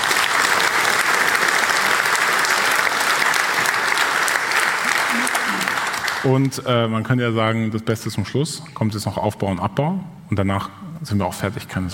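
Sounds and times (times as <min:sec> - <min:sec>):
audience applause: 0:00.0 - 0:06.6
speech: 0:06.3 - 0:11.9.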